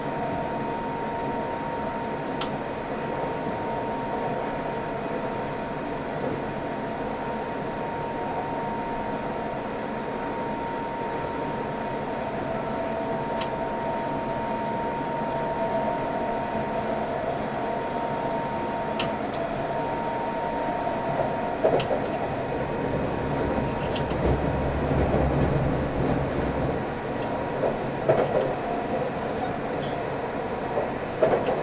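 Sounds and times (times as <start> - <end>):
E351 series Super Azusa limited express running between Hachioji and Shinjuku: 0.0 - 31.6
thin constant whine: 0.0 - 31.6.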